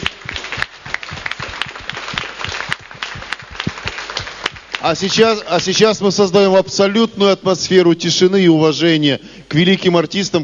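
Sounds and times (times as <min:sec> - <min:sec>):
workshop audience clapping for one another: 0:00.0 - 0:06.2
speech: 0:04.8 - 0:10.4.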